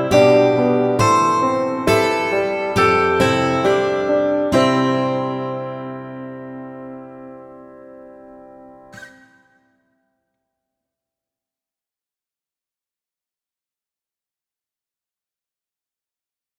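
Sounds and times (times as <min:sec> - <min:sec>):
piano piece: 0:00.0 - 0:09.8.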